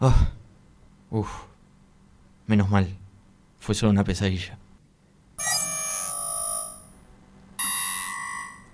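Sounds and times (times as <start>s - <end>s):
speech: 0.0s - 0.4s, 1.1s - 1.5s, 2.5s - 3.0s, 3.6s - 4.6s
alarm ringing: 5.4s - 7.0s, 7.6s - 8.7s.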